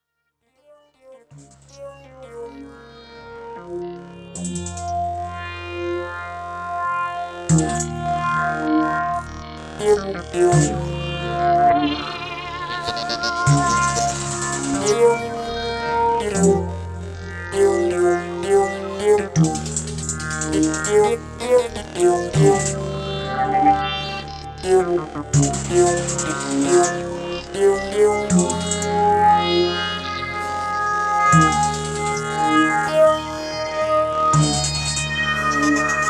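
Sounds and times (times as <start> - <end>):
walking bass line: 7.2 - 36.0.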